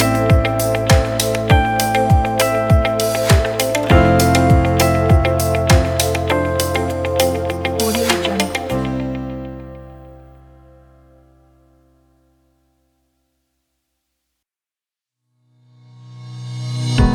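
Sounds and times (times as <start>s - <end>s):
chill corporate music: 0.0s - 11.3s.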